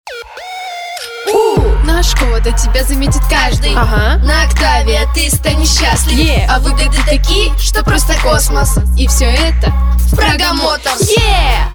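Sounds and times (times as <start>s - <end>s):
vocals: 1.0s - 11.7s.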